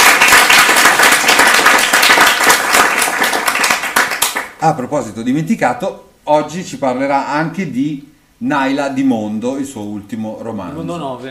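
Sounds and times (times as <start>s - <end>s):
audience applause: 0.0s - 4.5s
speech: 4.6s - 11.2s.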